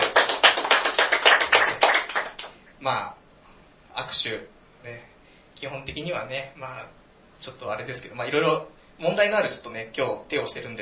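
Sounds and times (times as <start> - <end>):
audience applause: 0.0 - 2.5
speech: 2.8 - 3.2, 4.0 - 10.8.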